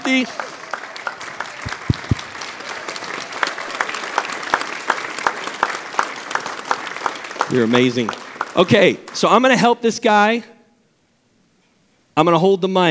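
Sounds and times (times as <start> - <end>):
audience applause: 0.0 - 9.4
speech: 0.1 - 0.5, 7.5 - 10.5, 12.2 - 12.8.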